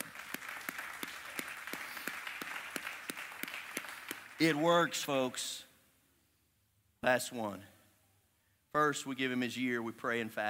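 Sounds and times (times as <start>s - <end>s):
crowd clapping: 0.0s - 4.9s
speech: 4.4s - 5.7s, 7.0s - 7.7s, 8.8s - 10.4s.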